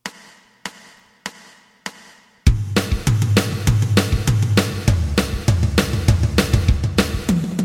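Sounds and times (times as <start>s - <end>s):
bass: 2.5s - 7.5s.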